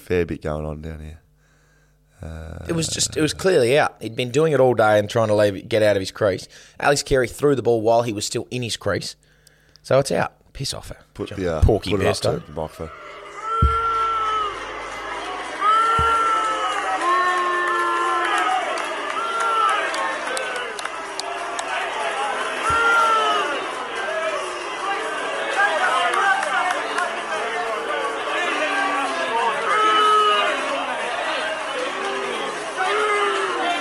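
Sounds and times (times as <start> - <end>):
speech: 0.1 - 1.2, 2.2 - 13.1
large stadium crowd booing: 12.0 - 33.7
loud shouts: 12.3 - 33.7.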